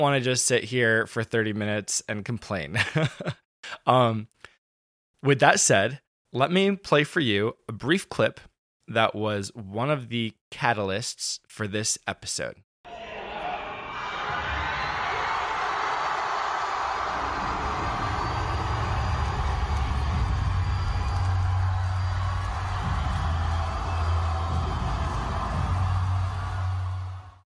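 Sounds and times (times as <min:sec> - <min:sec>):
speech: 0:00.0 - 0:04.4, 0:05.2 - 0:12.7
massive round of applause at event: 0:12.9 - 0:27.4.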